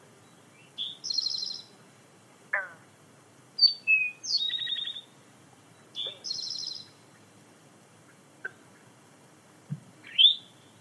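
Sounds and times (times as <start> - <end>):
forest birds chirping and whistling: 0.6 - 1.7, 3.6 - 5.1, 6.0 - 6.9, 10.1 - 10.5.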